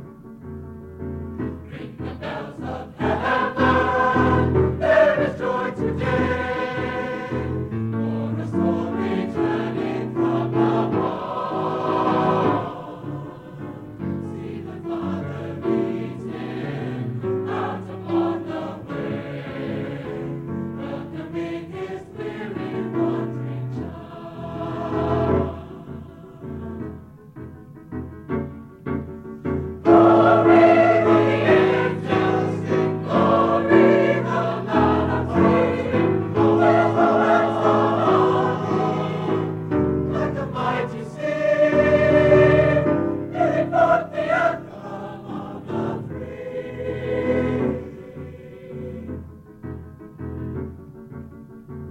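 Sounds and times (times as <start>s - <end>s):
chorus singing a hymn: 1.3s - 27.6s, 29.5s - 50.4s.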